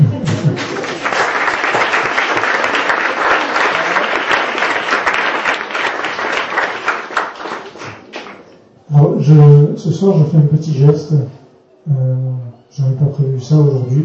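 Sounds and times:
laughter: 0:00.0 - 0:01.3, 0:03.3 - 0:04.4
audience applauding themselves: 0:00.2 - 0:08.4
speech: 0:09.3 - 0:14.0.

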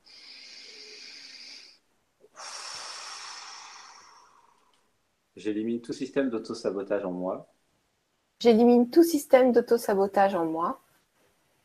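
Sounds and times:
deep breath: 0:00.0 - 0:05.0
speech: 0:05.4 - 0:07.5, 0:08.4 - 0:10.8.

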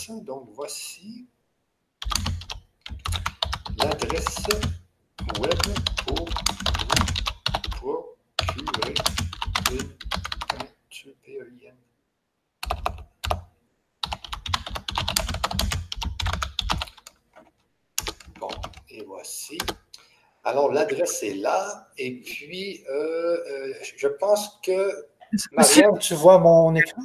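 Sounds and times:
speech: 0:00.0 - 0:01.4, 0:03.8 - 0:07.2, 0:07.8 - 0:10.2, 0:18.4 - 0:19.8, 0:20.4 - 0:27.0
typing on a computer keyboard: 0:02.0 - 0:07.8, 0:08.4 - 0:10.7, 0:12.6 - 0:13.4, 0:14.0 - 0:18.9, 0:19.6 - 0:19.8.

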